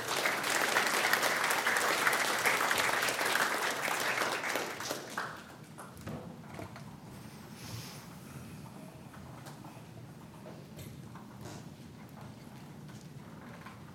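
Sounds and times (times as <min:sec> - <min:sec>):
crowd applauding: 0:00.0 - 0:05.6.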